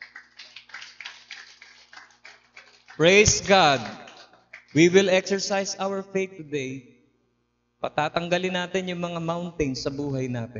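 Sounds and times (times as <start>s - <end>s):
scattered clapping from a church congregation: 0.0s - 5.0s
speech: 3.0s - 4.0s, 4.7s - 7.0s, 7.8s - 10.5s.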